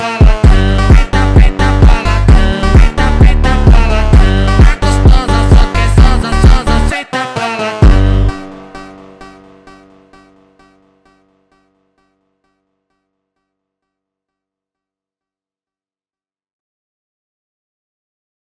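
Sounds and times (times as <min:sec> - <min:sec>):
Brazilian phonk music: 0:00.0 - 0:10.8.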